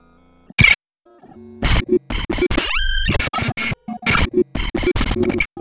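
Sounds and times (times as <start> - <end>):
glitch sound: 0.6 - 0.8, 1.7 - 5.5.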